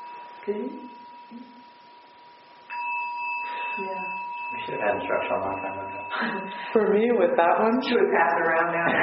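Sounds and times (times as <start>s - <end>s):
bell struck with a striker ringing: 0.0s - 2.0s, 2.7s - 7.2s
speech: 0.4s - 1.6s, 3.8s - 9.0s.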